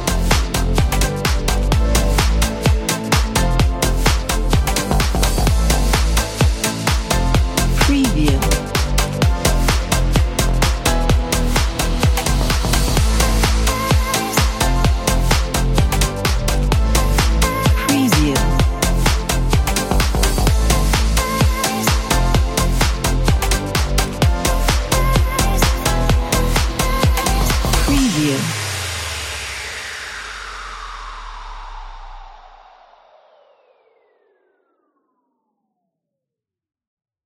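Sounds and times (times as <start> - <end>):
EDM house music: 0.0 - 29.2.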